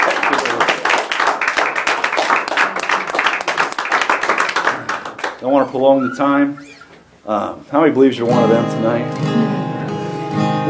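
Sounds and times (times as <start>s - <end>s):
audience hand clapping: 0.0s - 5.6s
speech: 5.4s - 9.6s.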